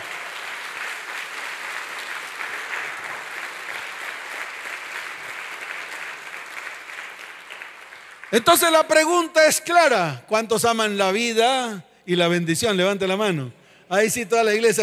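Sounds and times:
applause: 0:00.0 - 0:09.3
speech: 0:08.3 - 0:14.8.

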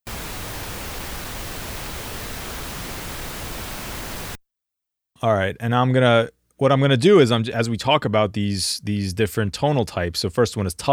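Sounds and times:
pink noise: 0:00.0 - 0:04.4
speech: 0:05.2 - 0:10.9.

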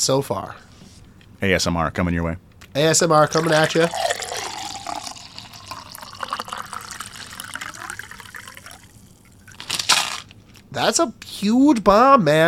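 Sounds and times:
speech: 0:00.0 - 0:00.7, 0:01.4 - 0:04.2, 0:10.8 - 0:12.4
liquid pouring into a pint glass: 0:03.3 - 0:09.6.

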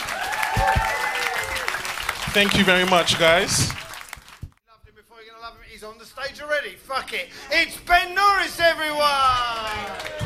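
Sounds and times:
applause: 0:00.0 - 0:04.5, 0:09.5 - 0:10.2
speech: 0:02.3 - 0:03.8, 0:06.2 - 0:10.2.

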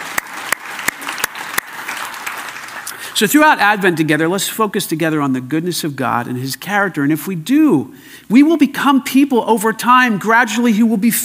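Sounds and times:
sharp louder claps: 0:00.0 - 0:03.2
audience clapping: 0:00.0 - 0:03.6
speech: 0:03.2 - 0:11.2.

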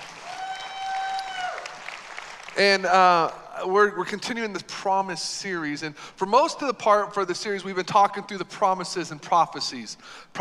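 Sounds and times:
audience applause: 0:00.0 - 0:03.4
speech: 0:02.6 - 0:10.3.

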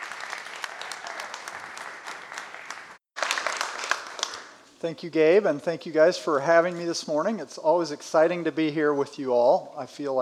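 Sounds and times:
audience applause welcoming a speaker: 0:00.0 - 0:04.5
speech: 0:04.8 - 0:10.1.

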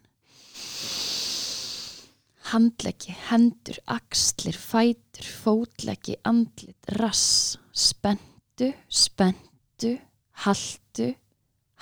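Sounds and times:
deep inhale: 0:00.3 - 0:02.2
speech: 0:02.5 - 0:11.2.

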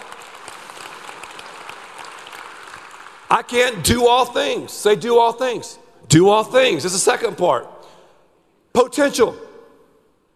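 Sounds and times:
audience clapping: 0:00.0 - 0:03.8
speech: 0:03.3 - 0:07.7, 0:08.8 - 0:09.4.

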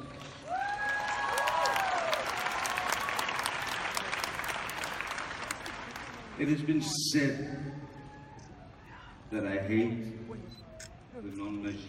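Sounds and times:
audience applause: 0:00.0 - 0:06.6
cheers and whistles: 0:00.5 - 0:03.6
speech: 0:06.4 - 0:07.8, 0:09.3 - 0:10.6, 0:11.2 - 0:11.8.

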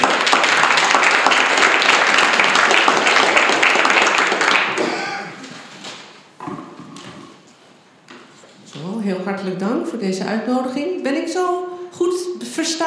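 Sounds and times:
audience clapping: 0:00.0 - 0:06.0
speech: 0:09.4 - 0:12.8.

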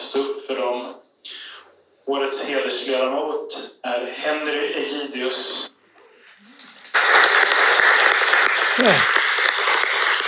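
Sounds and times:
speech: 0:00.2 - 0:01.4, 0:02.1 - 0:05.7, 0:08.8 - 0:09.2
audience applause: 0:06.8 - 0:10.2.

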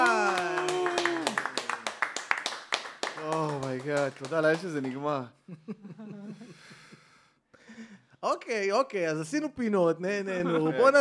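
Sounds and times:
audience clapping: 0:00.0 - 0:05.3
speech: 0:03.9 - 0:06.0, 0:08.2 - 0:10.9.

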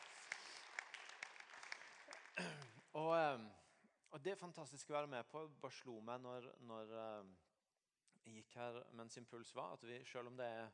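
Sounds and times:
audience applause: 0:00.0 - 0:02.9
speech: 0:02.4 - 0:07.5, 0:08.2 - 0:10.7.

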